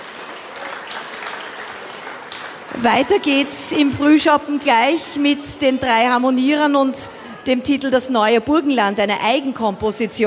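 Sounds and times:
audience applause: 0:00.0 - 0:04.6
speech: 0:02.7 - 0:10.2.

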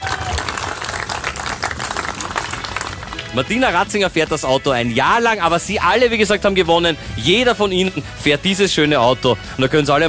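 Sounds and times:
audience applause: 0:00.0 - 0:03.5
speech: 0:03.3 - 0:10.0.

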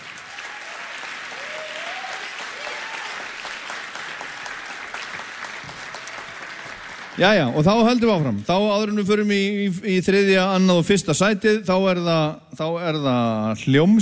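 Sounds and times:
audience applauding: 0:00.0 - 0:08.4
speech: 0:07.2 - 0:14.0.

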